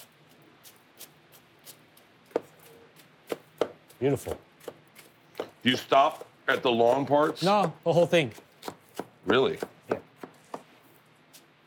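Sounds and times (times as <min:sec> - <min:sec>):
knife chopping green onions thinly on a board: 0:01.6 - 0:10.7
speech: 0:04.0 - 0:04.5, 0:05.6 - 0:08.5, 0:09.2 - 0:10.0.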